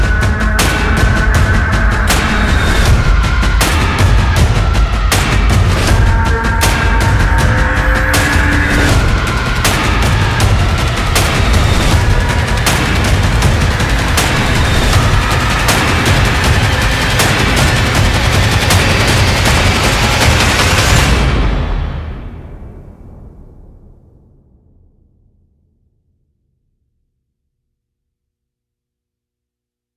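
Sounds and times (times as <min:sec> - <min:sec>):
percussion music: 0:00.0 - 0:21.8.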